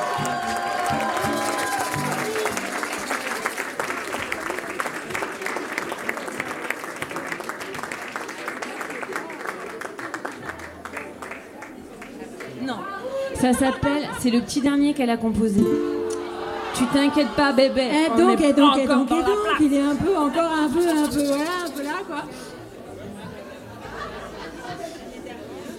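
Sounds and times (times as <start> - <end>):
audience applause: 0.0 - 12.6
laughter: 12.8 - 14.6, 16.1 - 19.6, 22.9 - 25.7
speech: 13.4 - 15.9, 16.8 - 21.6.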